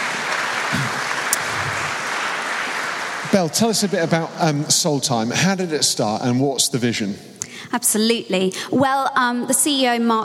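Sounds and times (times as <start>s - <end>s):
audience applause: 0.0s - 5.6s
speech: 3.3s - 10.2s.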